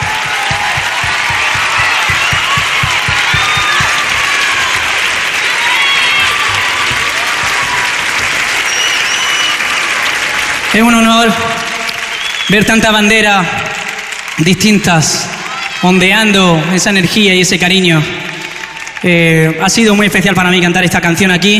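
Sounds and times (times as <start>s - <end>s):
rhythmic clapping: 0.0s - 12.8s, 13.4s - 15.8s, 17.6s - 19.4s
high whistles and cheers: 0.0s - 16.9s, 18.1s - 19.2s
large crowd applauding a band: 0.0s - 21.0s
speech: 10.8s - 11.5s, 12.5s - 13.8s, 14.4s - 18.2s, 19.0s - 21.5s.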